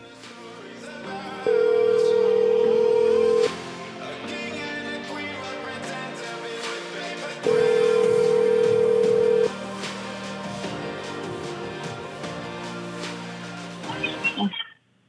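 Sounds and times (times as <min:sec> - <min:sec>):
telephone line tone while calling someone: 0:01.5 - 0:03.5, 0:07.5 - 0:09.5.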